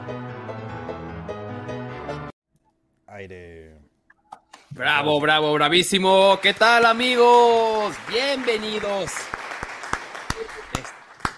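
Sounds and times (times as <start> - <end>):
speech: 3.2 - 3.9, 4.8 - 9.4
applause: 5.8 - 11.3.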